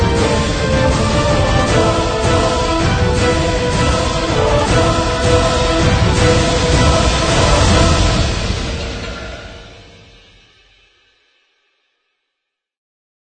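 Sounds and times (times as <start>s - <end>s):
orchestra playing tense dramatic action trailer music: 0.0s - 9.4s
trumpet: 0.0s - 10.0s
choir singing: 0.0s - 10.1s
tense dramatic action trailer drums: 0.0s - 11.6s.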